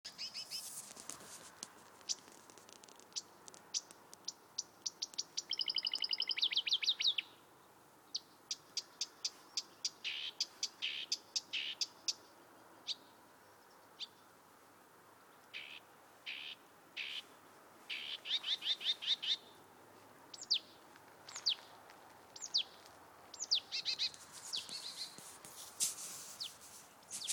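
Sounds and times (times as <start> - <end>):
bird song: 0.1 - 0.7, 3.1 - 14.4, 15.2 - 17.3, 17.9 - 19.6, 20.3 - 25.2, 26.4 - 27.3.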